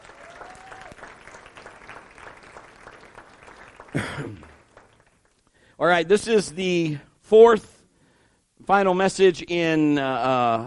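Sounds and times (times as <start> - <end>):
audience clapping hands: 0.0 - 5.6
speech: 3.9 - 4.5, 5.8 - 7.7, 8.7 - 10.6.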